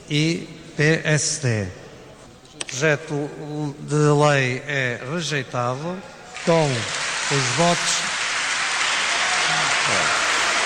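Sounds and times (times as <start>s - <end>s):
speech: 0.1s - 1.8s, 2.7s - 8.1s
parliament deputies and gallery applauding: 6.4s - 10.6s.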